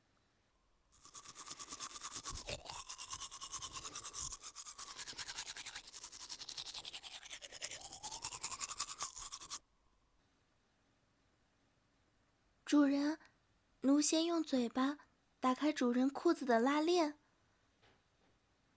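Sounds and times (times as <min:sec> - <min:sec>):
toothbrush scrubbing teeth: 0:01.0 - 0:09.6
speech: 0:14.0 - 0:17.2.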